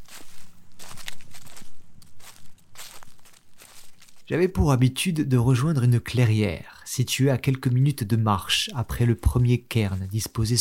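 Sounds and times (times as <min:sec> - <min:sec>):
footsteps on yellowed November leaves: 0:00.0 - 0:04.3, 0:08.8 - 0:10.6
speech: 0:04.3 - 0:10.6.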